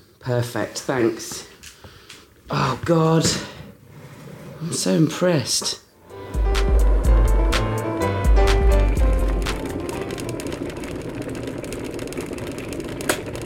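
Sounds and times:
speech: 0:00.2 - 0:01.5, 0:02.5 - 0:03.5, 0:04.6 - 0:05.8
electric kettle heating up: 0:06.1 - 0:13.4.

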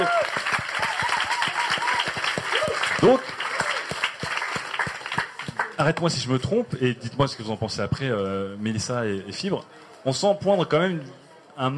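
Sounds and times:
audience applause: 0:00.0 - 0:06.0
speech: 0:05.8 - 0:11.7.

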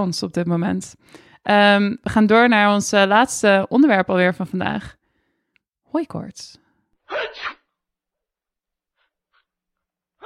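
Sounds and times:
speech: 0:00.0 - 0:05.0, 0:05.9 - 0:07.6
person sneezing: 0:07.1 - 0:07.6.

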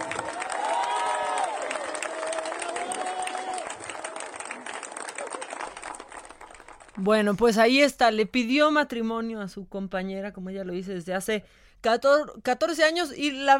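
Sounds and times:
audience clapping: 0:00.0 - 0:07.4
speech: 0:07.0 - 0:13.5.

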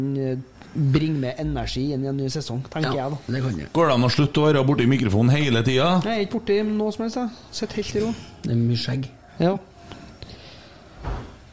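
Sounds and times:
speech: 0:00.0 - 0:09.7
doors slamming outside: 0:11.0 - 0:11.5.

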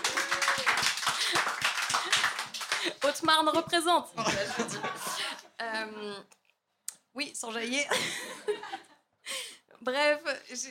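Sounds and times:
small group clapping: 0:00.0 - 0:04.6
speech: 0:03.1 - 0:05.1, 0:05.7 - 0:06.4, 0:07.2 - 0:08.9, 0:09.8 - 0:10.6
laughter: 0:04.2 - 0:05.6, 0:07.9 - 0:09.0.

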